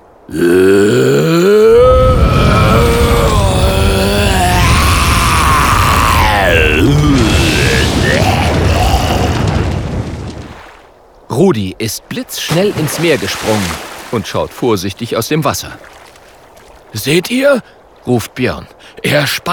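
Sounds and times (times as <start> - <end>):
speech: 0.3 - 0.6, 11.5 - 16.0, 16.9 - 19.5
terrible roaring from inside an igloo: 0.3 - 10.2.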